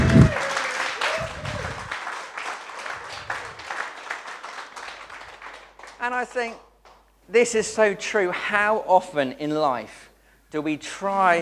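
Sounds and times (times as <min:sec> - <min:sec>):
audience applause: 0:00.0 - 0:06.5
speech: 0:06.1 - 0:06.7, 0:07.3 - 0:11.4.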